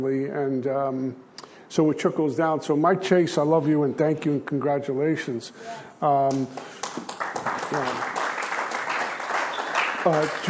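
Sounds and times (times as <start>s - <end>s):
speech: 0.0s - 8.2s, 10.0s - 10.4s
smattering of applause: 6.3s - 10.4s.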